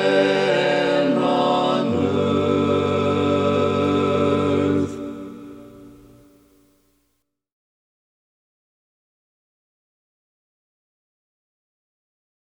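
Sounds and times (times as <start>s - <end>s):
baritone singing a cappella: 0.0s - 5.4s.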